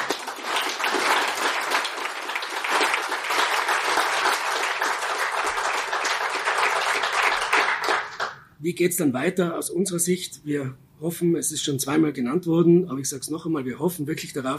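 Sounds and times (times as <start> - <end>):
audience applause: 0.0 - 8.4
speech: 8.6 - 14.5.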